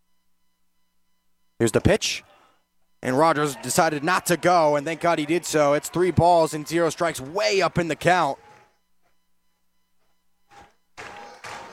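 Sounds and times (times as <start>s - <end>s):
speech: 1.6s - 2.3s, 3.0s - 8.4s
fans stomping: 3.0s - 9.1s, 9.9s - 11.7s
fans clapping: 3.1s - 8.8s, 10.5s - 11.7s.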